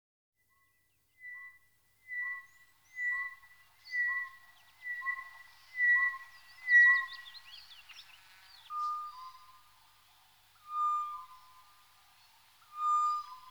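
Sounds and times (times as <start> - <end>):
Tropical boubou whistling duet: 1.2 - 9.7, 10.6 - 11.8, 12.6 - 13.4.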